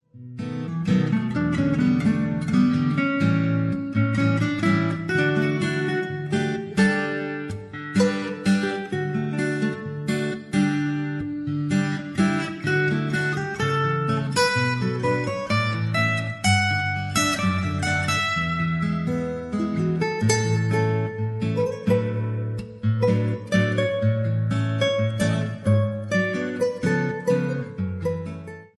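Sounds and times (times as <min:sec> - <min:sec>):
acoustic guitar: 0:00.1 - 0:28.7.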